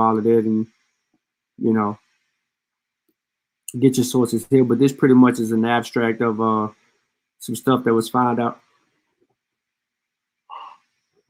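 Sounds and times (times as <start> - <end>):
speech: 0.0 - 0.8, 1.6 - 2.0, 3.7 - 6.8, 7.4 - 8.6
person yawning: 10.5 - 10.8.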